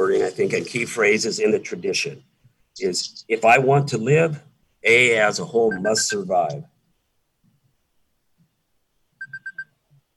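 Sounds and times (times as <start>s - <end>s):
speech: 0.0s - 6.7s
four-minute timer going off: 5.6s - 6.6s.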